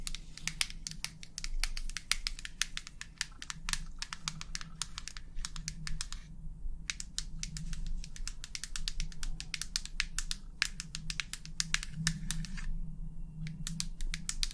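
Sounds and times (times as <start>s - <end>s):
long fingernails tapping: 0.0s - 6.3s, 6.9s - 12.6s, 13.4s - 14.5s.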